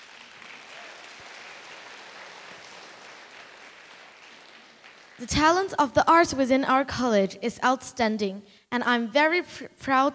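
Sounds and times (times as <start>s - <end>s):
audience applause: 0.0s - 5.3s
speech: 5.2s - 10.1s.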